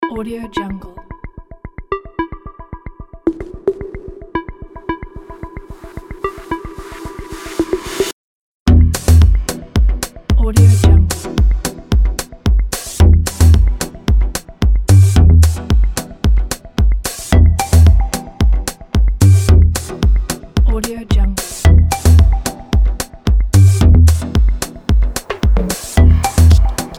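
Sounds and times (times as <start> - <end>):
cold minimal fashion show music: 0.0 - 8.0, 8.7 - 26.9.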